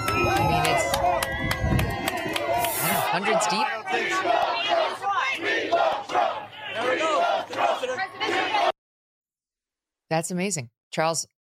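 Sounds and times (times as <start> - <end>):
rally crowd cheering: 0.0 - 8.8
speech: 3.2 - 4.5, 10.1 - 11.4.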